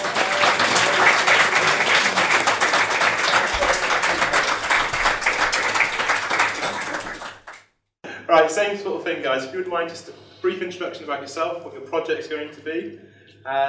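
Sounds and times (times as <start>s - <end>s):
crowd applauding: 0.0s - 7.6s
speech: 8.5s - 13.6s.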